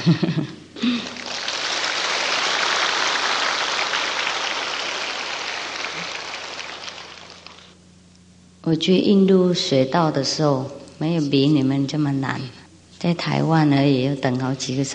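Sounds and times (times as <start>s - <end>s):
speech: 0.0s - 1.2s, 8.7s - 14.9s
audience applause: 0.8s - 7.8s.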